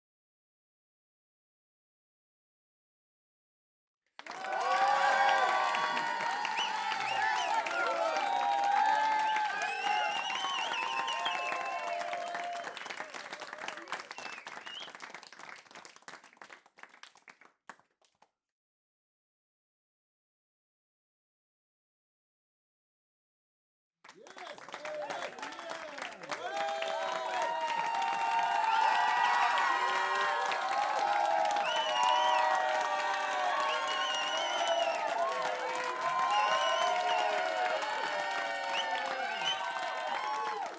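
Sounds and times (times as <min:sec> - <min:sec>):
audience applauding: 0:04.2 - 0:17.8, 0:24.1 - 0:40.7
whistling: 0:06.2 - 0:13.0, 0:14.0 - 0:15.1, 0:31.1 - 0:37.8, 0:38.4 - 0:40.6.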